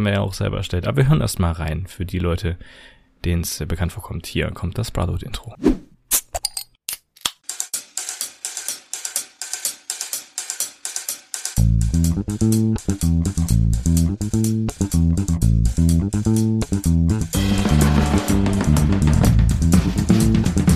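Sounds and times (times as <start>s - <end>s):
speech: 0.0s - 5.8s, 12.2s - 20.6s
Gösser beer bottle being opened: 6.1s - 7.4s.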